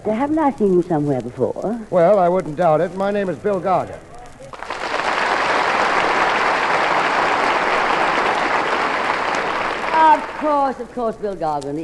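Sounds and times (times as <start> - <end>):
speech: 0.0 - 4.1, 10.4 - 11.8
applause: 4.5 - 10.9.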